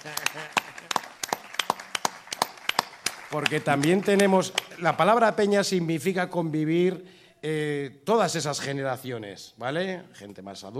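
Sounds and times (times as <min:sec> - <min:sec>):
speech: 0:00.0 - 0:01.0, 0:03.3 - 0:10.7
audience applause: 0:00.0 - 0:05.2.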